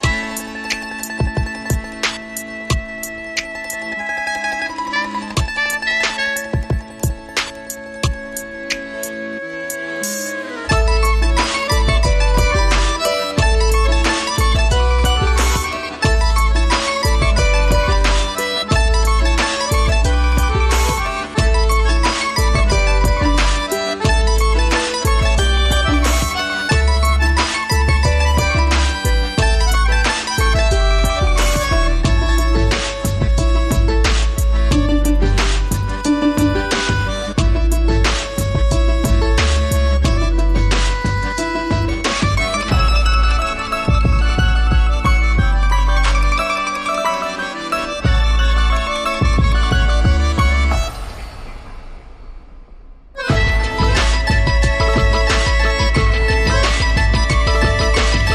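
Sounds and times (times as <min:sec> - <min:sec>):
mandolin groove: 0:00.0 - 0:50.9, 0:53.2 - 0:58.3.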